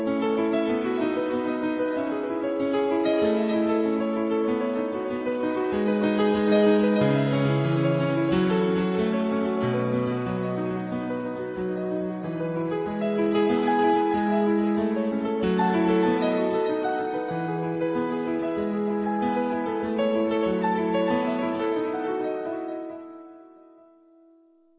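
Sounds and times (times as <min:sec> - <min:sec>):
new age music: 0:00.0 - 0:24.4.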